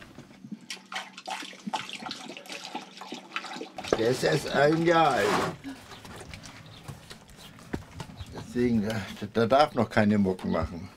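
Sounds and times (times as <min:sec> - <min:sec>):
water being poured in: 0:00.7 - 0:05.4
speech: 0:04.0 - 0:05.6, 0:08.6 - 0:10.9.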